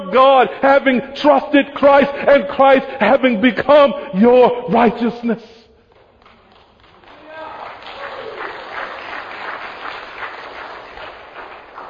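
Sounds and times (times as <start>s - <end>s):
speech: 0.1s - 5.6s
crowd applause: 5.9s - 11.8s.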